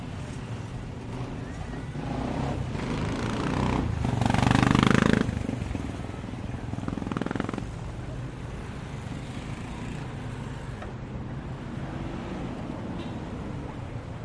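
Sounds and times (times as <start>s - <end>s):
motorcycle: 0.0s - 13.6s
street traffic: 0.0s - 14.2s.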